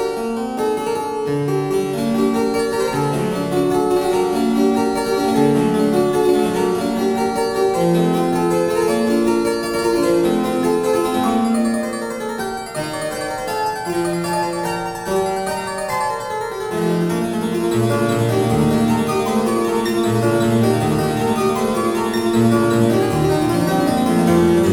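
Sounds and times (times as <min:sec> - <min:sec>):
French harpsichord: 0:00.0 - 0:24.7.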